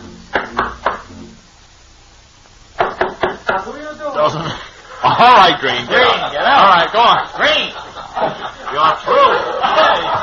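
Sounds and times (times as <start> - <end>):
sharp knocks on a door: 2.8 - 3.6
speech: 3.5 - 10.2
laughter: 4.2 - 10.2.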